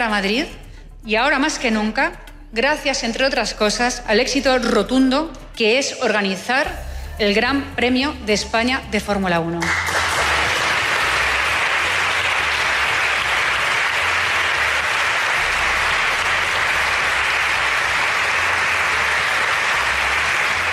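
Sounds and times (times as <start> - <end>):
speech: 0.0 - 9.9
loud applause: 9.6 - 20.7.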